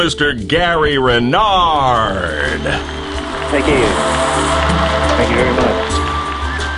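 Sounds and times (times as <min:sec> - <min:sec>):
speech: 0:00.0 - 0:06.0
audience applause: 0:02.0 - 0:06.7.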